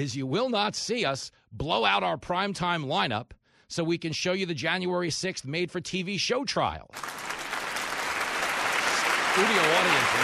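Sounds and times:
speech: 0.0 - 7.3, 9.4 - 10.2
studio audience applause: 7.0 - 10.2.

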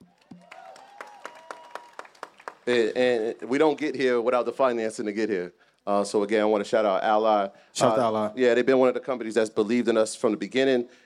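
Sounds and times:
audience applause: 0.1 - 3.2
speech: 2.6 - 11.0.

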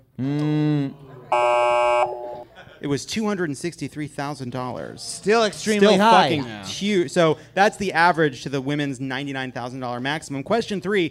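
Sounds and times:
speech: 0.2 - 0.4, 2.8 - 11.0
harsh buzzer blasts like a car horn: 1.3 - 2.4.

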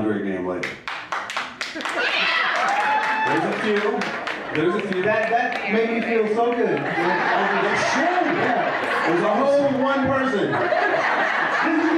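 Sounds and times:
speech: 0.1 - 1.0, 1.7 - 11.9
round of applause: 0.6 - 9.2
laughter: 1.8 - 11.9.

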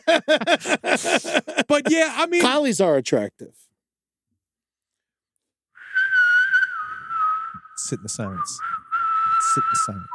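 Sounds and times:
laughter: 0.0 - 2.2
speech: 0.1 - 3.6, 7.8 - 8.8, 9.4 - 10.1
person whistling a TV theme tune: 5.8 - 10.1.

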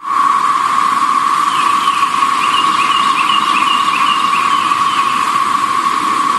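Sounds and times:
dense chorus of cicadas droning: 0.0 - 6.3
faint wavering trill: 1.3 - 6.3.

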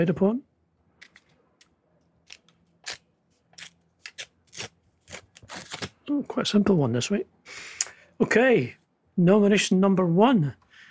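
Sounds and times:
speech: 0.0 - 0.5, 6.1 - 7.6, 8.2 - 10.6
paper envelope being torn open: 2.2 - 6.0.

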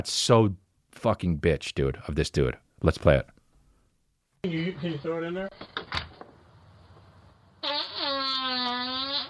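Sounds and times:
speech: 0.0 - 3.3, 4.4 - 5.8
low noise: 0.0 - 8.1
fart caught on doorbell camera: 7.6 - 9.2.

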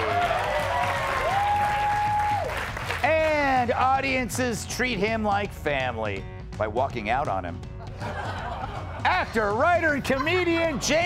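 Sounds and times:
steady audience applause: 0.0 - 3.6
speech: 3.7 - 8.2, 9.2 - 11.0
laughter: 7.8 - 11.0.

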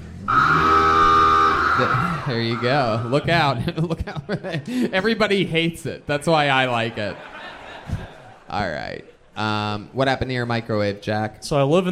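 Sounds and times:
nuclear warning alarm sound effect: 0.2 - 3.6
laughter: 1.8 - 5.5, 6.5 - 9.8
speech: 1.8 - 11.8.

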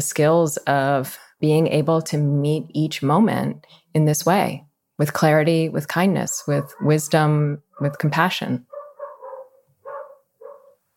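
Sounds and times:
speech: 0.0 - 8.7
dogs of Bushwick barking outside: 6.4 - 7.0, 8.7 - 10.8.

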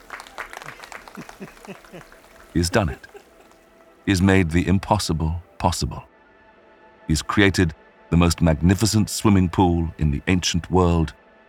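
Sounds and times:
staff and workers cheering and applauding: 0.0 - 3.8
man laughing out loud: 0.7 - 3.6
speech: 1.4 - 3.1, 4.0 - 6.1, 7.1 - 11.2.

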